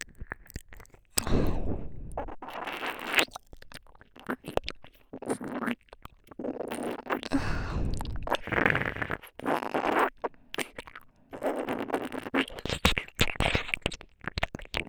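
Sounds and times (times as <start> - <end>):
ear licking in right ear: 1.2 - 3.2, 6.7 - 14.8.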